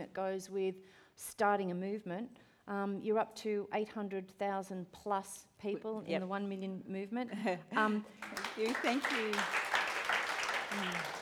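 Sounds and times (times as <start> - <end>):
speech: 0.0 - 9.6, 10.7 - 11.1
audience applauding: 8.1 - 11.2.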